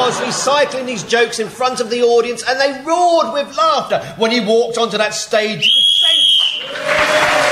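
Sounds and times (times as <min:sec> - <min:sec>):
laughter: 0:00.0 - 0:01.6
speech: 0:00.1 - 0:07.4
game show whistle blown: 0:05.6 - 0:06.8.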